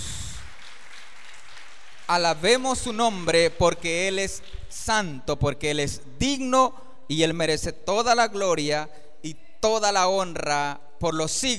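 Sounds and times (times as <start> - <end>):
crowd applause: 0.0 - 2.4
speech: 2.1 - 11.5.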